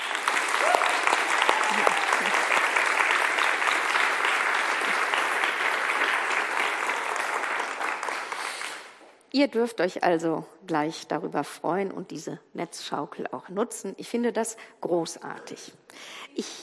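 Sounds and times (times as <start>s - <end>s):
audience applause: 0.0s - 9.0s
speech: 9.4s - 16.6s.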